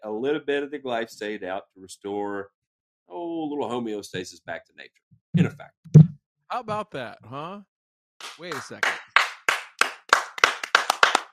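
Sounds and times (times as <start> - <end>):
speech: 0.0 - 7.7, 8.4 - 9.0
hand clapping: 8.2 - 11.3.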